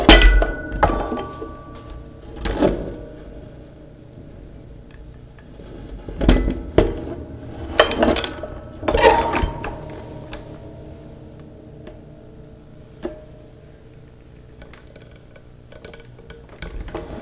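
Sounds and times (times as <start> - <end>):
zither bells: 0.1 - 3.6, 7.2 - 13.9.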